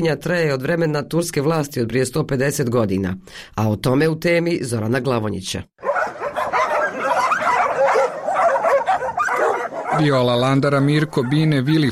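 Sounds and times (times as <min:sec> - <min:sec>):
speech: 0:00.0 - 0:05.9, 0:10.0 - 0:11.9
abandoned dogs barking and whimpering in a shelter on the Danube: 0:05.8 - 0:11.9.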